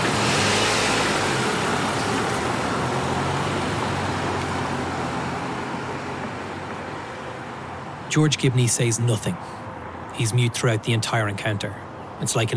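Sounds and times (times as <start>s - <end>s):
car driving off: 0.0s - 7.0s
speech: 8.1s - 9.6s, 10.2s - 12.5s.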